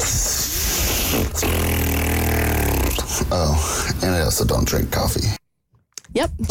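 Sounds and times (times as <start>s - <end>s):
failed attempt at whistling, breathy blowing: 0.0s - 4.0s
speech: 3.3s - 5.4s, 6.1s - 6.5s.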